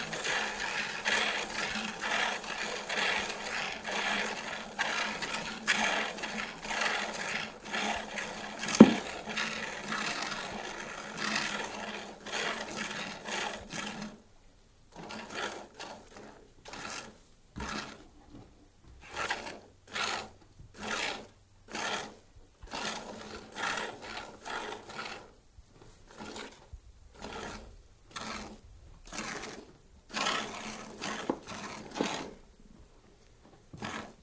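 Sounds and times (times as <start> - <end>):
milk poured into churn: 0.0 - 10.5
goat milked by hand indoors: 0.0 - 14.2, 14.9 - 32.4, 33.7 - 34.2.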